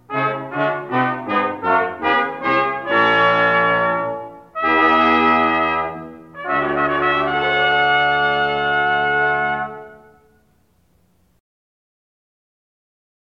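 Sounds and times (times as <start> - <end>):
fanfare: 0.0 - 10.5.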